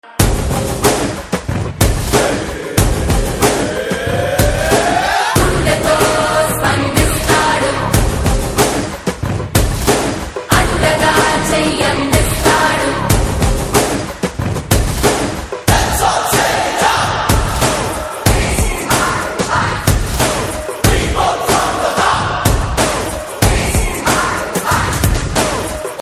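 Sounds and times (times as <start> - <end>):
drum beats: 0.0 - 26.0.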